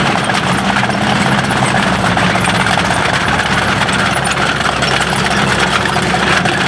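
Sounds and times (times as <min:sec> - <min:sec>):
vehicle engines: 0:00.0 - 0:06.6.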